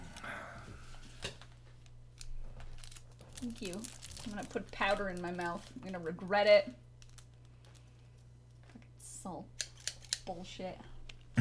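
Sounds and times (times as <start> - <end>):
scissors cutting open a packet: 1.8 - 8.0, 9.5 - 10.4
speech: 3.4 - 6.8, 9.2 - 9.7, 10.3 - 11.3.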